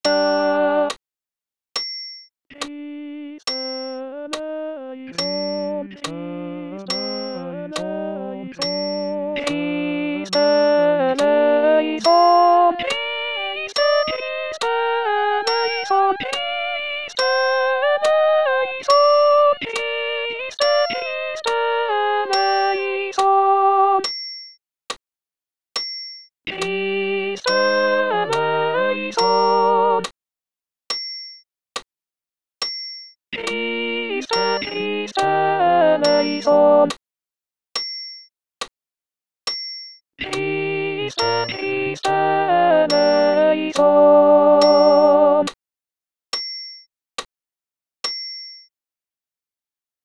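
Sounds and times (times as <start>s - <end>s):
alto voice singing: 0.0s - 1.0s, 2.6s - 24.0s, 26.5s - 30.1s, 33.4s - 37.0s, 40.2s - 45.5s
accompaniment: 2.6s - 23.6s, 26.5s - 30.0s, 33.4s - 36.9s, 40.2s - 45.4s.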